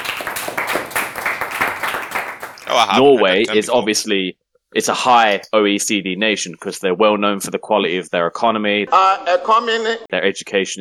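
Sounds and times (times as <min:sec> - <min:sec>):
people clapping: 0:00.0 - 0:03.6
speech: 0:02.8 - 0:10.7.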